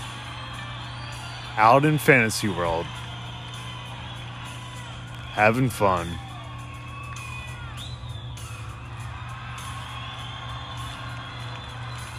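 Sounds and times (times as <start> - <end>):
excited crowd cheering: 0.0 - 12.1
speech: 1.6 - 3.0, 5.4 - 6.3.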